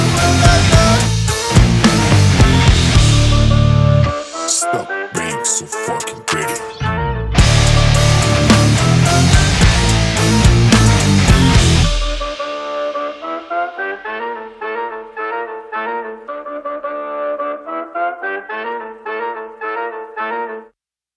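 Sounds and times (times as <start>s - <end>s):
rock remix: 0.0s - 13.6s.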